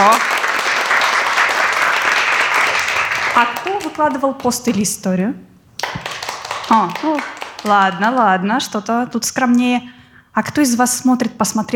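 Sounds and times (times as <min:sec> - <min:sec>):
audience applause: 0:00.0 - 0:04.2, 0:05.8 - 0:08.4
speech: 0:03.4 - 0:05.5, 0:06.7 - 0:11.7.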